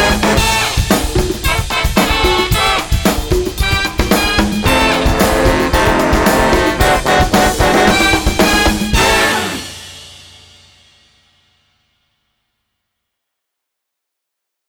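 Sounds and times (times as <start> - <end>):
New Orleans street funky brass band music: 0.0 - 10.4.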